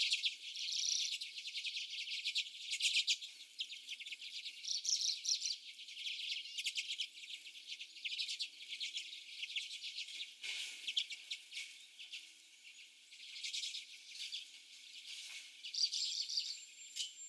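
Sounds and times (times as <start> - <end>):
common redpolls chattering: 0.0 - 17.2.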